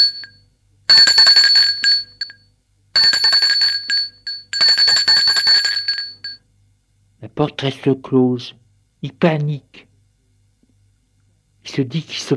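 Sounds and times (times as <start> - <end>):
doorbell ringing: 0.0 - 2.4, 3.0 - 6.4
speech: 7.4 - 9.8, 11.8 - 12.3.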